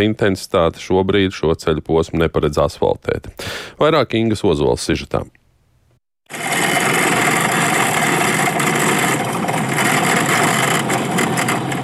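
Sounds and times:
speech: 0:00.0 - 0:05.4
car driving on potholed gravel road: 0:06.3 - 0:11.8.

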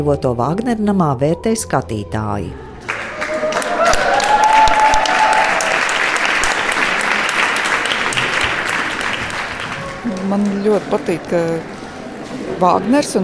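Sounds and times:
speech: 0:00.0 - 0:02.6, 0:10.3 - 0:11.8, 0:12.6 - 0:13.2
crowd cheering: 0:02.8 - 0:11.1
loud applause: 0:02.8 - 0:11.1.

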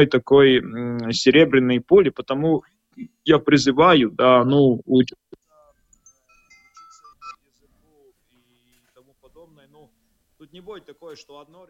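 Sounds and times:
speech: 0:00.0 - 0:05.3, 0:10.5 - 0:11.6
phone ringtone melody in the background: 0:05.5 - 0:07.4.

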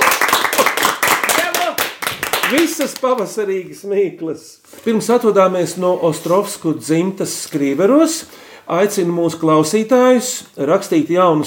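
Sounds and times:
audience applause: 0:00.0 - 0:03.2
speech: 0:02.5 - 0:11.4.

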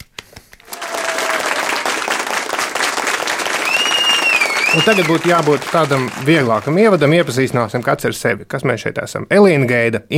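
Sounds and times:
inserted crowd applause: 0:00.6 - 0:08.0
faint whistles: 0:03.6 - 0:05.4
speech: 0:04.8 - 0:10.1.

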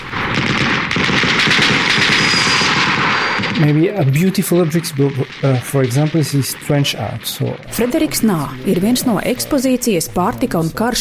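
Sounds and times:
submachine gun rattling fire: 0:00.0 - 0:08.4
speech: 0:03.6 - 0:11.0.

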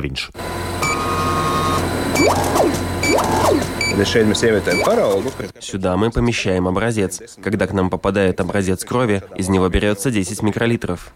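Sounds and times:
speech: 0:00.0 - 0:00.4, 0:02.2 - 0:02.8, 0:04.0 - 0:11.1
motor whirring: 0:00.4 - 0:05.5
laboratory equipment humming: 0:00.4 - 0:05.6
faint high beeps: 0:00.8 - 0:05.2.

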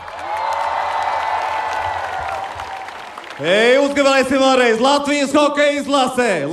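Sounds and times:
stormy applause from crowd: 0:00.0 - 0:04.8
speech: 0:03.4 - 0:06.5.

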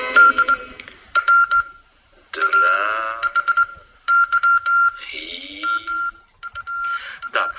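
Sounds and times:
telegraph operator tapping out Morse code beeps: 0:00.2 - 0:05.0, 0:05.6 - 0:07.5.

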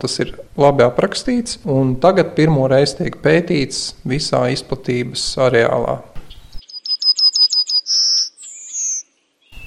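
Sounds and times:
speech: 0:00.0 - 0:06.1
yellowhammer singing: 0:06.3 - 0:09.6.

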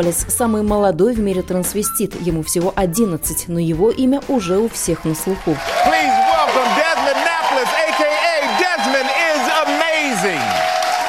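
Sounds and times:
speech: 0:00.0 - 0:06.2
studio audience clapping: 0:04.5 - 0:11.0.

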